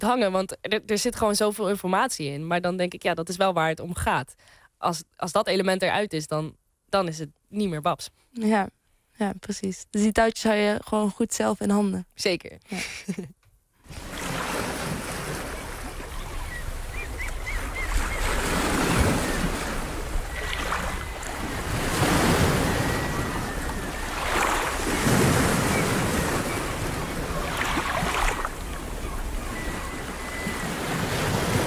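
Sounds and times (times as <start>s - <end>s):
speech: 0.0s - 14.3s
sea waves washing onto a shore: 13.9s - 31.6s.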